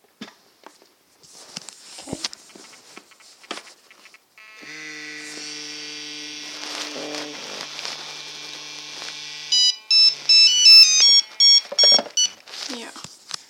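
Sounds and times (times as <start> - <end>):
old phone ringing: 4.4 - 12.4.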